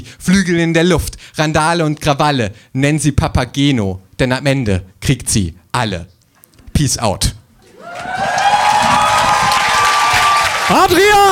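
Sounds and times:
speech: 0:00.1 - 0:06.2, 0:06.8 - 0:08.3, 0:10.7 - 0:11.3
audience applause: 0:07.7 - 0:11.3.

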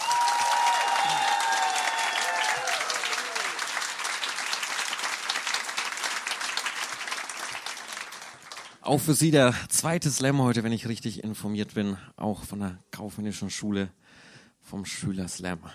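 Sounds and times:
whistles or cheers: 0:00.0 - 0:03.6
audience applause: 0:00.0 - 0:08.8
speech: 0:08.9 - 0:15.7.

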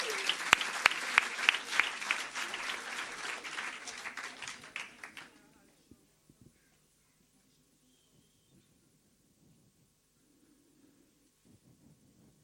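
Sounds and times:
crowd applauding: 0:00.0 - 0:05.4.

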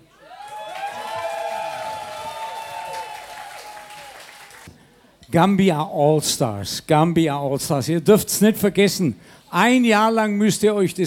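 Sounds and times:
voices cheering, whooping and shouting: 0:00.1 - 0:04.5
audience applause: 0:00.2 - 0:04.7
speech: 0:05.3 - 0:11.0.

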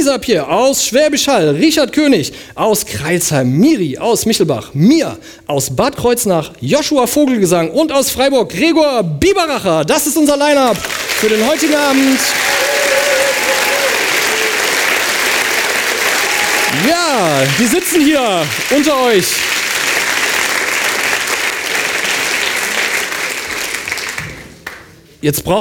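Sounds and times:
speech: 0:00.0 - 0:12.8, 0:16.7 - 0:19.6, 0:25.2 - 0:25.5
audience applause in a hall: 0:10.7 - 0:24.8.

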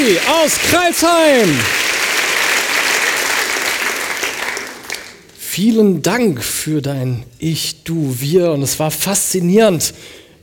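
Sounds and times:
speech: 0:00.0 - 0:02.0, 0:05.6 - 0:10.2
audience applause: 0:00.0 - 0:05.3.

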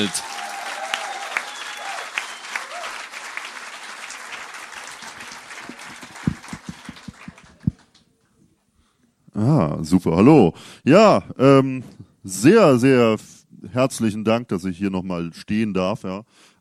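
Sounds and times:
speech: 0:00.0 - 0:00.3, 0:09.4 - 0:16.5
audience applause for a performer's entrance: 0:00.0 - 0:08.0.

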